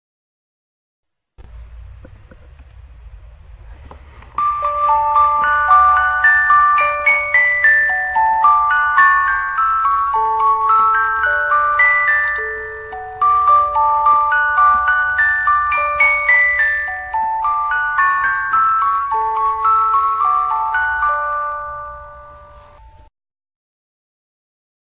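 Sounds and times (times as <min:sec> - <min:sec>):
music box playing: 0:04.1 - 0:23.1.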